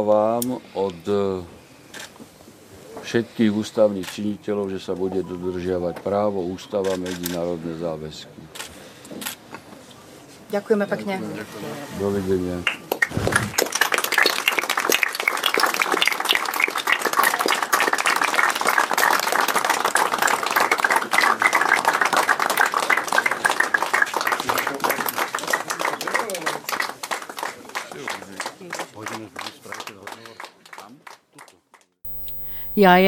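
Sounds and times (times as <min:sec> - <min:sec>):
speech: 0:00.0 - 0:01.6, 0:03.0 - 0:08.6, 0:10.5 - 0:13.3, 0:32.8 - 0:33.0
applause: 0:12.6 - 0:33.0.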